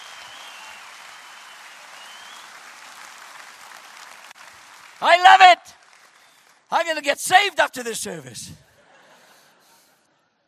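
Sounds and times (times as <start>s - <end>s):
audience applause: 0.0s - 7.5s
speech: 5.0s - 5.8s, 6.7s - 8.6s.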